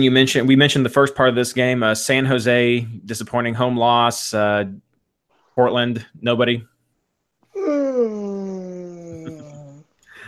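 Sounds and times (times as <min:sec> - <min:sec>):
speech: 0:00.0 - 0:04.9, 0:05.6 - 0:06.7
person yawning: 0:07.5 - 0:09.8.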